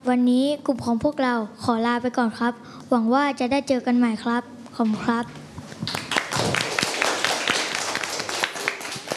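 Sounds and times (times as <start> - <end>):
speech: 0.0 - 6.0
audience clapping: 5.8 - 9.1.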